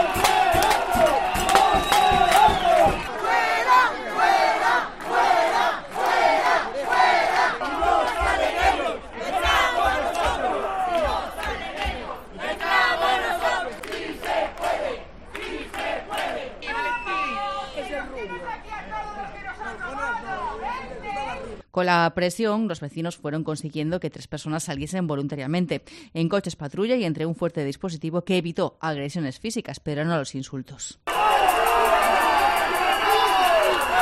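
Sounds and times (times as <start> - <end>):
crowd shouting: 0.0 - 21.4, 31.1 - 34.0
speech: 21.8 - 31.3.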